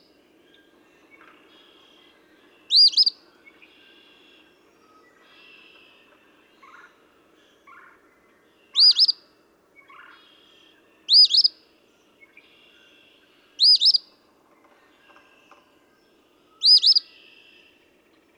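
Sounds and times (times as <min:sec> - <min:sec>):
Eastern phoebe buzzy song phrases: 0:02.7 - 0:03.2, 0:13.6 - 0:14.0, 0:16.6 - 0:17.8.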